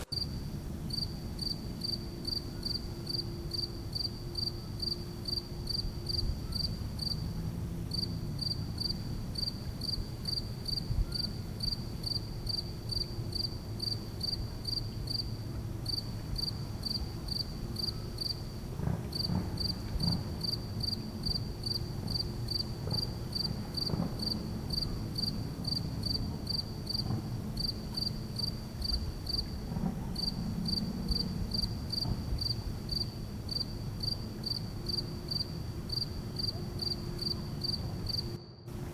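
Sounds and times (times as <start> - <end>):
crickets chirping: 0.0 - 38.9.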